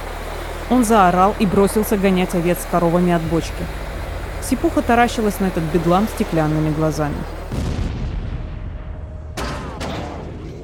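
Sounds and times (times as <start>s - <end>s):
speech: 0.7s - 3.8s, 4.5s - 7.8s
explosion of a detonator: 2.4s - 10.4s.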